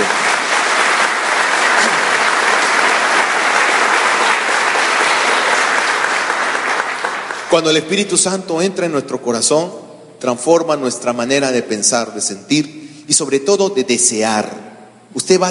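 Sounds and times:
audience applause: 0.0 - 7.7
speech: 7.5 - 15.4.

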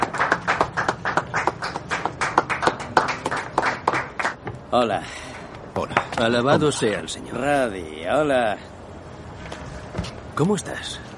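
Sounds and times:
classmates applauding emotionally: 0.0 - 4.4
speech: 4.7 - 8.7, 10.4 - 11.0.

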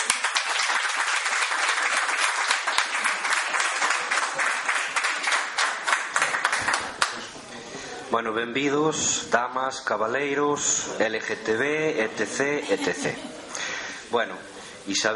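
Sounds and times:
audience applause: 0.0 - 7.4
speech: 8.1 - 13.4, 14.1 - 15.1
laughter: 12.0 - 14.0.

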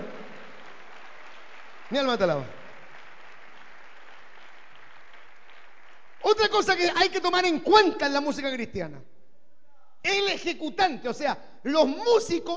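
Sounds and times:
audience applause: 0.0 - 6.8
speech: 1.9 - 2.6, 6.3 - 9.2, 10.0 - 12.5.

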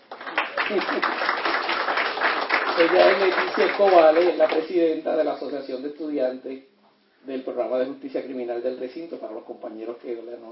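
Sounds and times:
audience applause: 0.0 - 4.7
speech: 0.7 - 1.3, 2.8 - 10.5.

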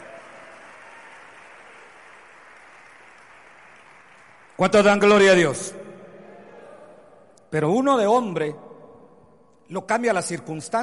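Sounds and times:
audience applauding: 0.0 - 5.3
speech: 4.6 - 5.8, 7.5 - 8.7, 9.7 - 10.8.

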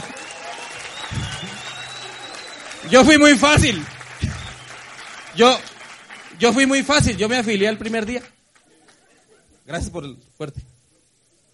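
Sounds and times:
applause: 0.0 - 9.1
speech: 2.8 - 3.9, 5.4 - 5.7, 6.4 - 8.4, 9.7 - 10.7.

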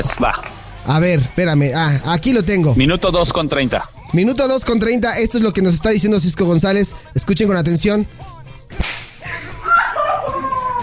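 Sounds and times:
speech: 0.0 - 9.4
spanking slap: 8.7 - 9.5
laughter: 9.2 - 10.8.

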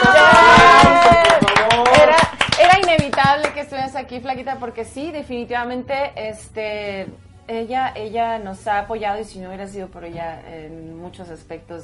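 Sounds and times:
hand claps for a guest on a project-celebration show: 0.0 - 3.7
speech: 3.6 - 11.8.

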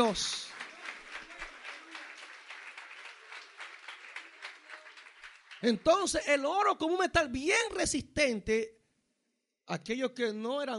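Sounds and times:
speech: 0.0 - 0.5, 5.6 - 8.8, 9.7 - 10.7
audience applauding: 0.0 - 6.4.

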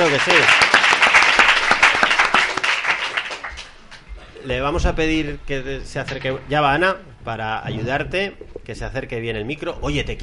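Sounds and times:
crowd applauding: 0.0 - 4.1
speech: 0.1 - 0.8, 4.4 - 10.2.

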